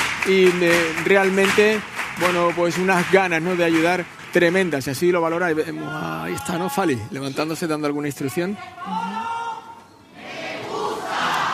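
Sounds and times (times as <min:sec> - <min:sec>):
audience applause: 0:00.0 - 0:05.7
speech: 0:00.2 - 0:09.4.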